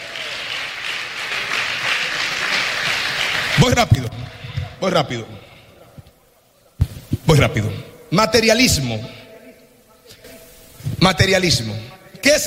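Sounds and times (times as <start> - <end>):
audience applause: 0.0 - 4.6
speech: 3.6 - 4.2, 4.8 - 5.4, 7.4 - 9.2, 11.0 - 12.4.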